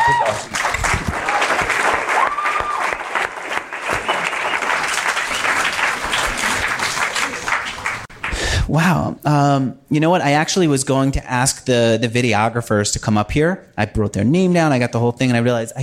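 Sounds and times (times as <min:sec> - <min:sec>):
audience applause: 0:00.0 - 0:08.5
speech: 0:08.7 - 0:15.8.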